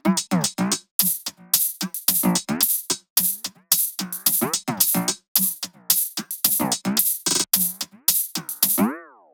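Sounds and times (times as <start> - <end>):
hi-hat loop: 0.2 - 8.9.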